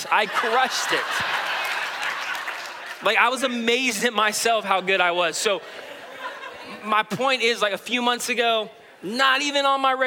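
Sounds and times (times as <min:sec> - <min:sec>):
speech: 0:00.0 - 0:01.4, 0:03.0 - 0:05.9, 0:06.8 - 0:10.0
laughter: 0:00.0 - 0:03.6, 0:04.2 - 0:07.2
audience clapping: 0:00.4 - 0:03.5.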